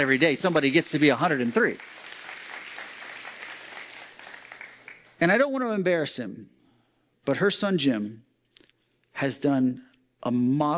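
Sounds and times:
speech: 0.0 - 2.0, 5.2 - 6.6, 7.2 - 8.3, 9.2 - 10.7
audience applause celebrating a woman's 103rd birthday: 0.0 - 5.2.

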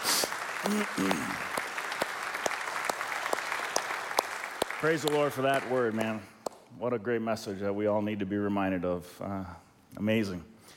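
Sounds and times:
round of applause: 0.0 - 6.7
speech: 0.6 - 1.5, 4.8 - 10.5.

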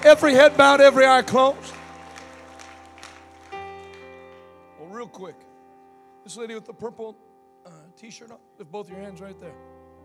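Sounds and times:
speech: 0.0 - 1.7, 5.0 - 5.5, 6.2 - 9.7
audience hand clapping: 0.0 - 4.5.

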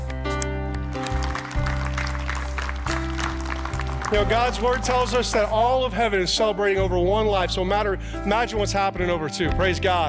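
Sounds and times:
audience hand clapping: 0.7 - 6.0
speech: 4.1 - 10.0.

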